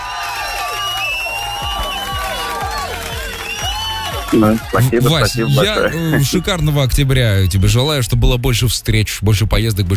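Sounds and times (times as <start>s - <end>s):
applause: 0.0s - 6.2s
speech: 4.3s - 9.9s.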